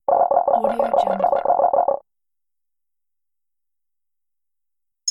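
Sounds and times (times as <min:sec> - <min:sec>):
ringtone: 0:00.1 - 0:02.0.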